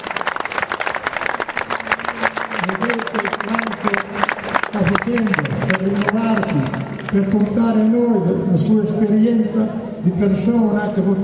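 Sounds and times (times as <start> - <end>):
audience applauding a priest: 0.0 - 7.2
speech: 4.8 - 6.4, 7.1 - 11.2.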